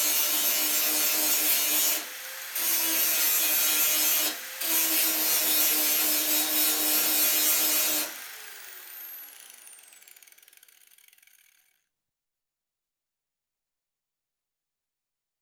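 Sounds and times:
electric grinder grinding in long bursts in construction: 0.0s - 11.8s.

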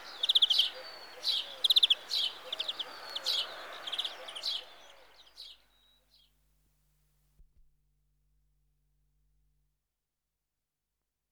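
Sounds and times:
European greenfinch Carduelis chloris giving short rapid trilled bursts: 0.0s - 4.0s.

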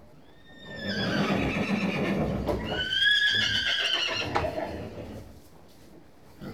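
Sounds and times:
horse whinnying in stables: 0.2s - 5.0s.

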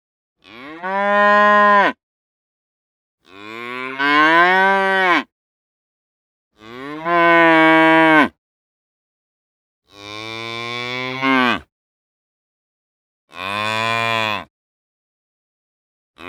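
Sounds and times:
cow mooing: 0.4s - 2.0s, 3.3s - 5.3s, 6.6s - 8.4s, 9.9s - 11.7s.

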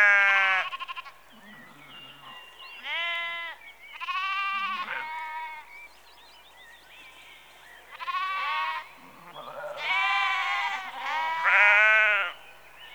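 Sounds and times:
sheep bleating in a rural outdoor setting: 0.0s - 5.6s, 7.9s - 12.4s.

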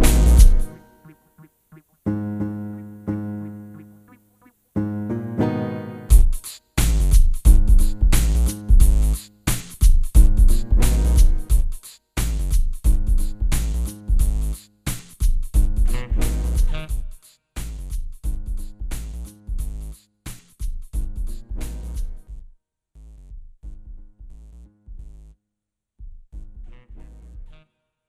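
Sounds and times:
hard rap beat loop: 0.0s - 1.8s, 6.1s - 22.2s.

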